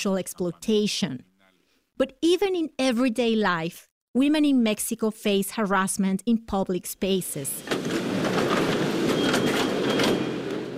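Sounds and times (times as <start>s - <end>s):
speech: 0.0s - 1.3s, 2.0s - 8.6s
subway train running on rails: 7.6s - 10.7s.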